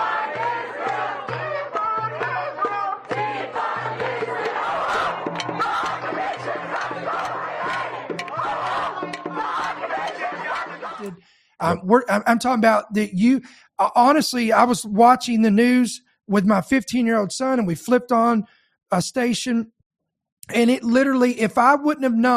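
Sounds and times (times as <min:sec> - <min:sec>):
protest crowd yelling and chanting: 0:00.0 - 0:11.8
speech: 0:11.1 - 0:19.8, 0:20.5 - 0:22.3.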